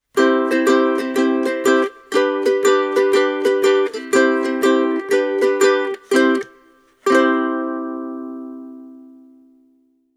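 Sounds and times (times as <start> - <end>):
miked concert ukuleles playing: 0.0 - 9.4.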